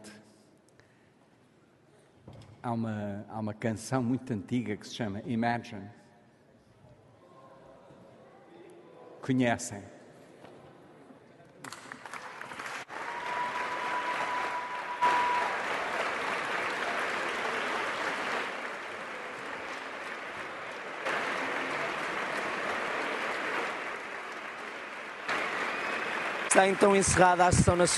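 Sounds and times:
speech: 0:02.6 - 0:06.0, 0:09.3 - 0:10.0, 0:26.6 - 0:27.9
sustained applause from an audience: 0:11.8 - 0:27.9.

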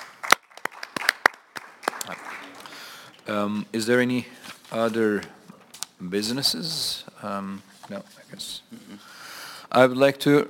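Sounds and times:
scattered applause of approval from a small group: 0:00.0 - 0:03.1
speech: 0:03.2 - 0:05.4, 0:06.0 - 0:10.4.

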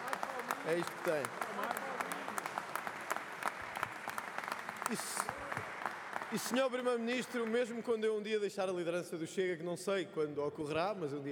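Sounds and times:
parliament members applauding: 0:00.0 - 0:08.4
speech: 0:00.6 - 0:01.9, 0:04.9 - 0:05.6, 0:06.3 - 0:11.3.

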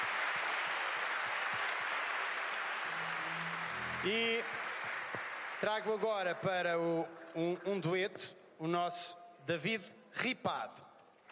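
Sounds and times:
crowd applauding: 0:00.0 - 0:08.0
speech: 0:04.0 - 0:04.6, 0:05.6 - 0:10.9.

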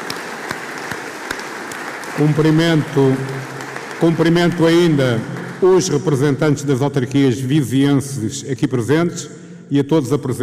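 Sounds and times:
crowd applauding: 0:00.0 - 0:06.3
speech: 0:02.2 - 0:10.4.

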